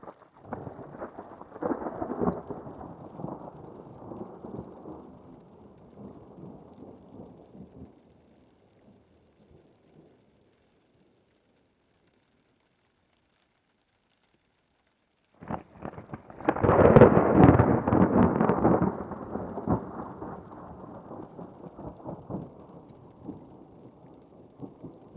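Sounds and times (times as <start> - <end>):
thunderstorm on top of Chacaltaya mountain at 5300 m in Bolivia: 0.4 - 7.9, 15.4 - 25.1.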